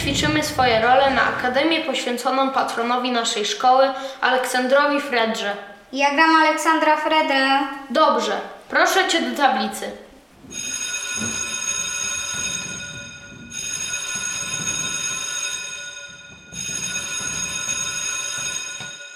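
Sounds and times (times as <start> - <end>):
speech: 0.1 - 11.4
school fire alarm bell ringing: 10.5 - 19.1.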